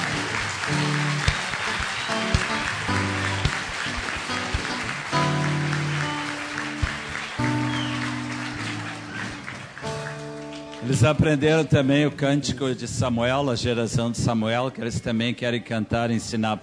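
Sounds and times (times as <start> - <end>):
audience applauding: 0.0 - 12.1
speech: 10.9 - 16.6.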